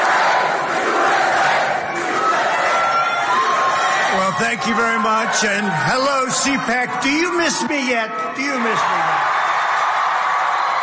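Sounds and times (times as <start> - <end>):
crowd cheering wildly: 0.0 - 10.8
speech: 4.4 - 9.2.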